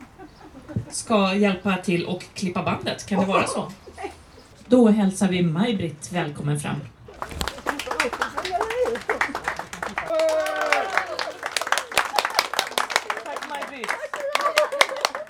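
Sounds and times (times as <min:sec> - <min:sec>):
laughter: 0:00.0 - 0:01.6, 0:02.7 - 0:04.4, 0:07.1 - 0:15.2
voice and chatter: 0:00.0 - 0:14.7
speech: 0:00.9 - 0:03.8, 0:04.7 - 0:07.4
crowd applauding: 0:07.2 - 0:15.2.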